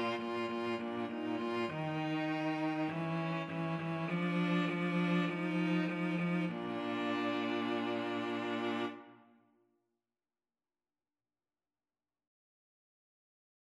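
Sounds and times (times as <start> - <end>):
string trio karaoke backing: 0.0 - 9.1.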